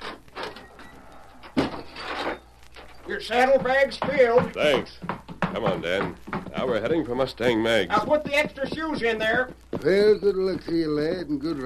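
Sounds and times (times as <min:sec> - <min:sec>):
door opening: 0:00.0 - 0:03.2
speech: 0:03.2 - 0:11.6.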